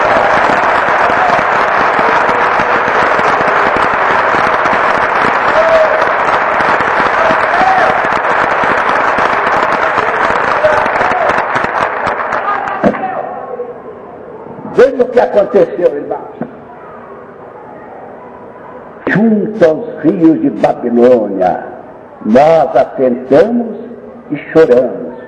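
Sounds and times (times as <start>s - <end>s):
congregation clapping for Jesus during a church service: 0.0s - 13.2s
speech: 15.2s - 16.2s, 19.2s - 25.0s.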